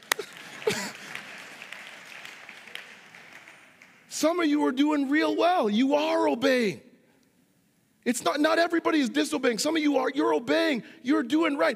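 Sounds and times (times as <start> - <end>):
audience clapping: 0.0 - 4.3
speech: 4.2 - 6.9, 8.0 - 11.7.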